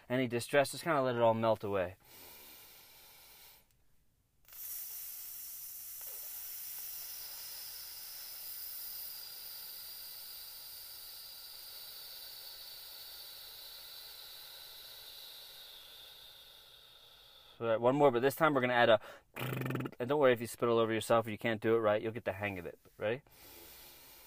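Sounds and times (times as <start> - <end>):
speech: 0.1 - 2.3, 17.7 - 23.6
hissing exhale breathing exercise: 2.0 - 3.7, 4.5 - 17.6, 23.3 - 24.2.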